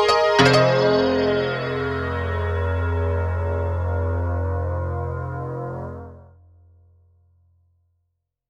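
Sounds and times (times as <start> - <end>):
piano: 0.0 - 6.3.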